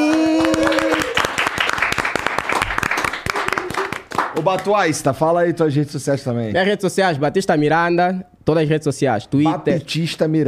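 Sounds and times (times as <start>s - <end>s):
vocal cheer: 0.0s - 1.2s
small group applauding: 0.0s - 4.8s
speech: 4.4s - 10.4s.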